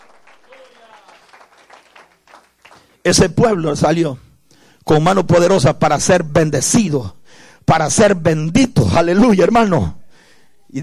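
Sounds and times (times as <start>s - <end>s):
audience applause: 0.0s - 3.0s
speech: 3.1s - 4.2s, 4.9s - 10.0s.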